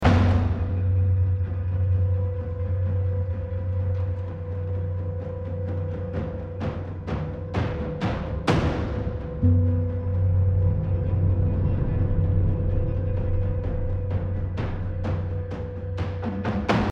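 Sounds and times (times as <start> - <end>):
tension music: 0.0 - 16.9.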